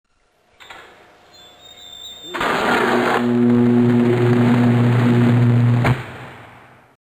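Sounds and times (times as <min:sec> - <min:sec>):
345kV switch: 0:01.8 - 0:06.5.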